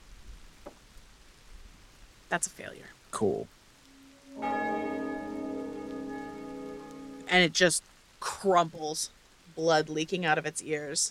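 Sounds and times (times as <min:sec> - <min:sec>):
speech: 0:02.3 - 0:03.6, 0:07.3 - 0:11.0
low hum: 0:03.8 - 0:07.3
deep tolling bell sound effect: 0:03.9 - 0:07.3.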